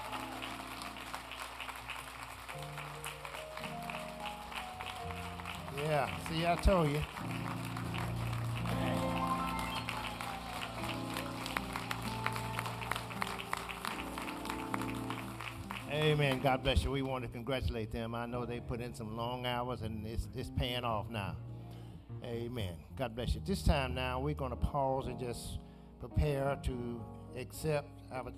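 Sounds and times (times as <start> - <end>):
audience giving a round of applause: 0.0 - 16.9
speech: 5.8 - 7.4, 16.0 - 21.5, 22.2 - 28.3.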